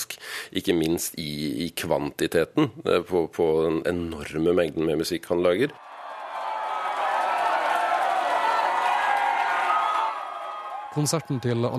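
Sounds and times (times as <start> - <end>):
speech: 0.5 - 5.9, 11.0 - 11.7
concert crowd cheering and applauding: 5.8 - 11.7.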